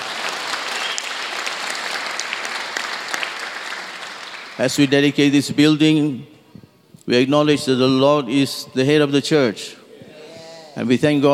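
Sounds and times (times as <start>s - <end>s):
audience clapping: 0.0s - 4.9s
speech: 4.6s - 6.3s, 7.1s - 9.8s, 10.8s - 11.3s.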